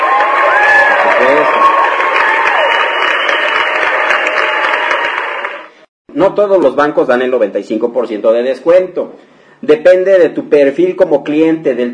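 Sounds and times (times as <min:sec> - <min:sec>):
audience applause: 0:00.0 - 0:05.8
speech: 0:06.2 - 0:11.9.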